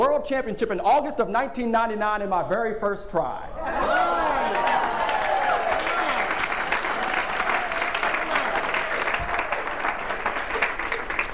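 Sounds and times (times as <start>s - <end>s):
speech: 0.0s - 4.9s
room full of people applauding: 3.8s - 11.3s.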